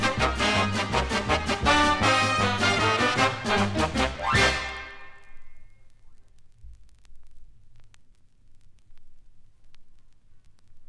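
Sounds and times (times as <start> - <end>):
instrumental ensemble: 0.0 - 5.3.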